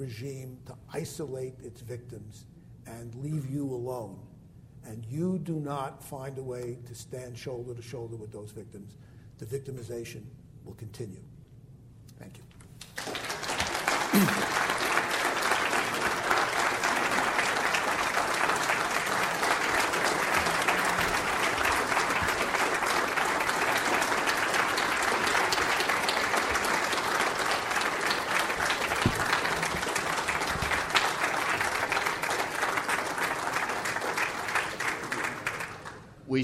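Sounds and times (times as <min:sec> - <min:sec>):
speech: 0:00.0 - 0:11.3, 0:12.2 - 0:12.5, 0:14.1 - 0:14.7
standing ovation applause: 0:12.9 - 0:36.1.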